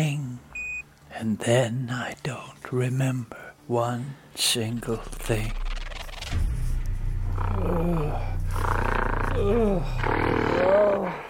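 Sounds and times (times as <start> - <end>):
speech: 1.2 - 5.6, 6.3 - 6.5, 7.4 - 11.2
gorilla in a cage growling and grunting: 7.2 - 11.2.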